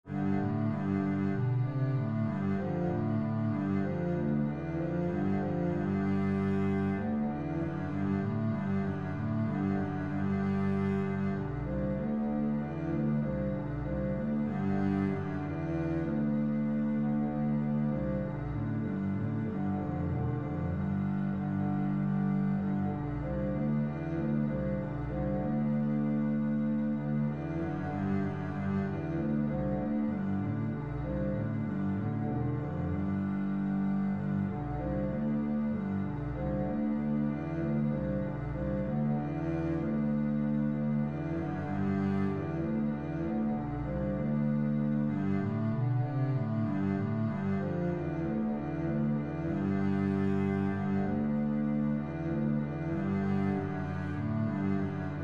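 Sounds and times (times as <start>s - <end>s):
string bass: 0.0s - 55.2s.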